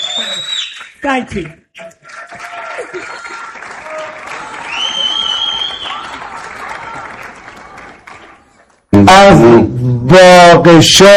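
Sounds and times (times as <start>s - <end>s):
speech: 1.0s - 2.0s, 9.0s - 11.1s
audience applause for a maestro and his orchestra: 1.8s - 8.9s.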